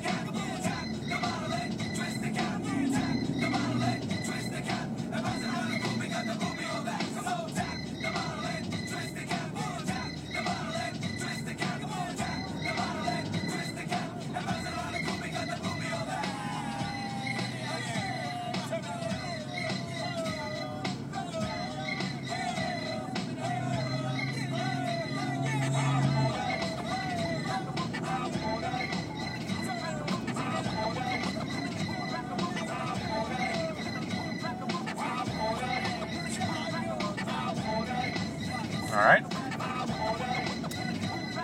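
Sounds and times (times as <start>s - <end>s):
road traffic, cars: 0.0s - 41.4s.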